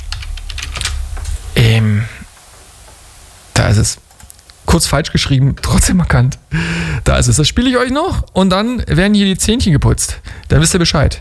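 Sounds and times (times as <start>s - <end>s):
computer keyboard typing: 0.0s - 1.1s
speech: 3.7s - 4.1s, 4.7s - 11.1s.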